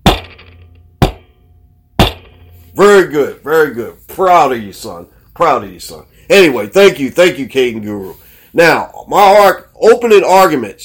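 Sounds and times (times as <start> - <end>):
gavel banging: 0.0 - 2.7
speech: 2.8 - 10.8.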